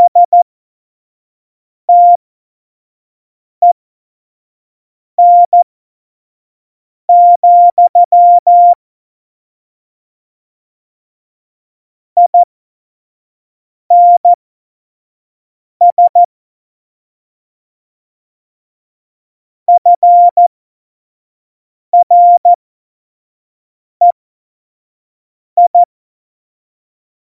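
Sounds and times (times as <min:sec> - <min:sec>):
morse code beeps: 0:00.1 - 0:00.4, 0:01.9 - 0:02.2, 0:05.2 - 0:05.6, 0:07.1 - 0:08.8, 0:13.9 - 0:14.4, 0:15.9 - 0:16.3, 0:19.8 - 0:20.5, 0:22.0 - 0:22.5, 0:25.6 - 0:25.9.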